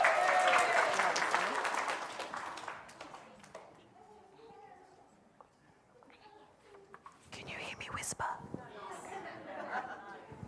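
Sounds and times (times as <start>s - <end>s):
audience clapping: 0.0s - 3.8s
laughter: 8.7s - 10.4s.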